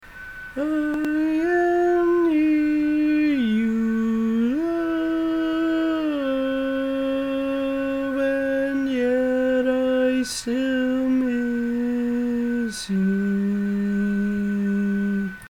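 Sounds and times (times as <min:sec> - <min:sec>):
barbershop tags lead voice: 0:00.6 - 0:15.4.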